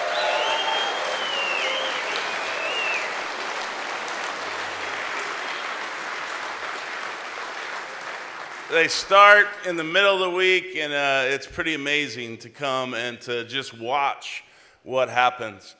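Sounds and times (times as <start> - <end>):
audience round of applause: 0.0 - 9.5
speech: 8.7 - 15.7.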